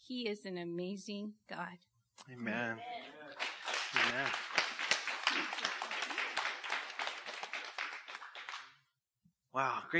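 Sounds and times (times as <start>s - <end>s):
speech: 0.1s - 3.2s, 4.1s - 4.5s, 9.5s - 9.9s
audience applause: 3.2s - 8.8s.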